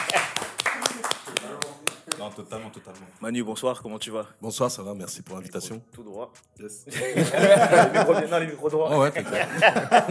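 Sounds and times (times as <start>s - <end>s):
laughter: 0.0s - 0.5s, 6.9s - 10.0s
hand clapping in studio: 0.0s - 3.1s
speech: 2.3s - 10.0s.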